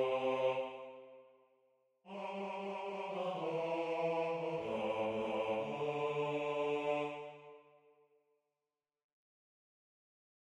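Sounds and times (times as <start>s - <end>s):
bass voice part singing a hymn: 2.1s - 7.4s.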